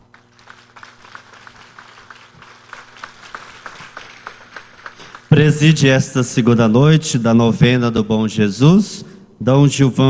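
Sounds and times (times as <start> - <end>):
applause: 0.0 - 5.9
speech: 5.4 - 10.0.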